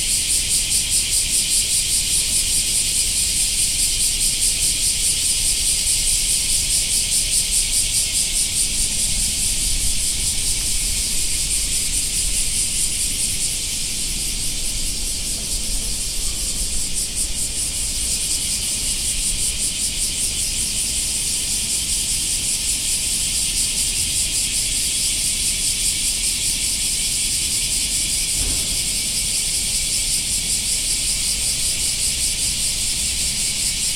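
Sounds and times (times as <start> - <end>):
cicadas: 0.0 - 33.9.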